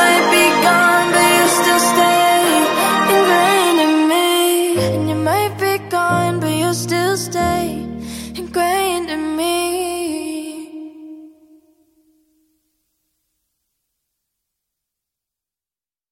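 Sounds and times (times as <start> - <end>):
acoustic music: 0.0 - 10.2.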